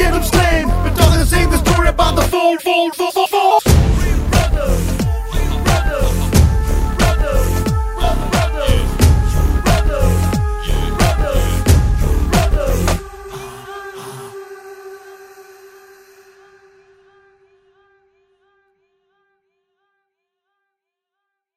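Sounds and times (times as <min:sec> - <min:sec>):
background music: 0:00.0 - 0:16.4.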